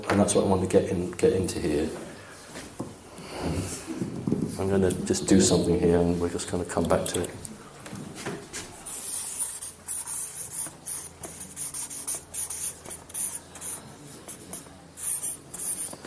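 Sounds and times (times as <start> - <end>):
speech: 0.0 - 2.1, 4.6 - 7.5
pen handwriting the name of a tower on paper: 8.9 - 16.0.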